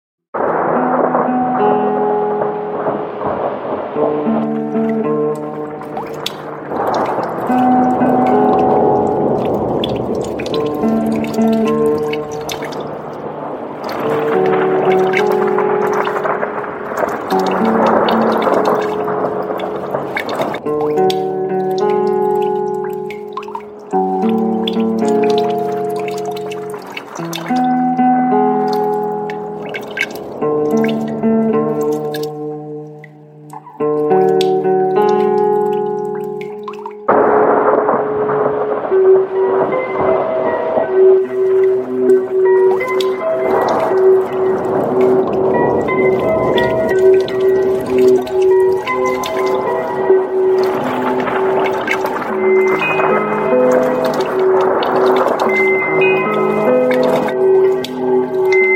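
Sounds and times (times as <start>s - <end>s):
instrumental music: 0.5s - 58.7s.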